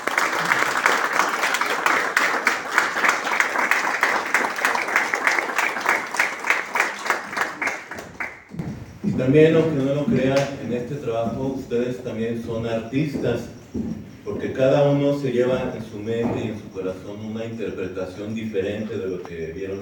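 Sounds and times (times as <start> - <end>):
audience applause: 0.0 - 8.6
speech: 9.3 - 19.8.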